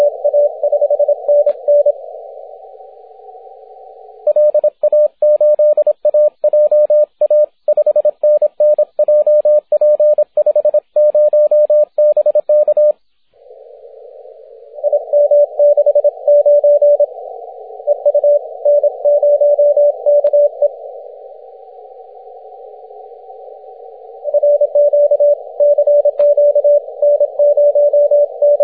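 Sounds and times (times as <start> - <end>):
6m CW morse code signal: 0.0 - 2.0, 4.3 - 13.0, 14.8 - 17.1, 17.8 - 20.8, 24.2 - 28.6.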